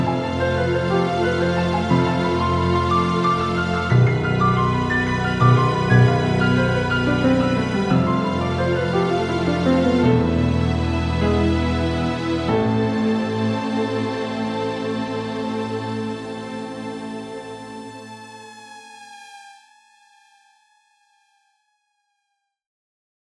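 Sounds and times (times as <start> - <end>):
instrumental music: 0.0 - 18.6.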